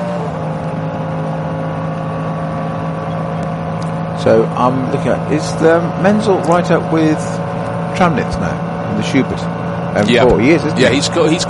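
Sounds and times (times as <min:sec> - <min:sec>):
racing car engines including a Porsche Cayman droning: 0:00.0 - 0:11.4
speech: 0:04.2 - 0:11.4.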